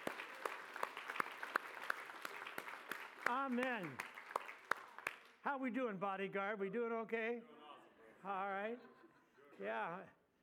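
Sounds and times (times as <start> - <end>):
sparse applause from a church audience: 0.0 - 5.4
speech: 3.3 - 4.1, 5.4 - 7.6, 8.2 - 9.0, 9.6 - 10.2.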